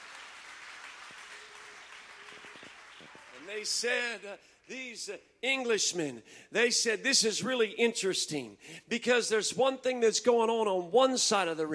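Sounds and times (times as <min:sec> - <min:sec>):
audience clapping hands in praise: 0:00.0 - 0:04.8
speech: 0:03.5 - 0:11.7.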